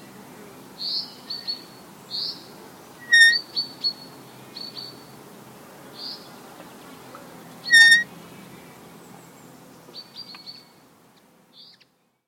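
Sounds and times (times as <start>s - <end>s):
gate squeaking in the breeze: 3.1s - 3.4s, 7.7s - 8.1s.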